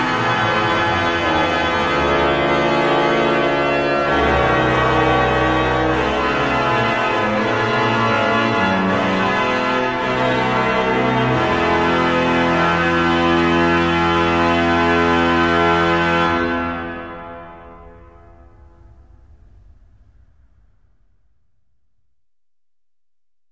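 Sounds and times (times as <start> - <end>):
organ: 0.0 - 18.4.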